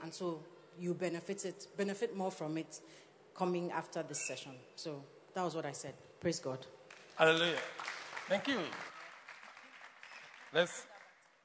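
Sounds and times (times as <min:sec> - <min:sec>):
speech: 0:00.0 - 0:08.9, 0:10.5 - 0:10.9
scattered audience clapping: 0:06.9 - 0:11.4.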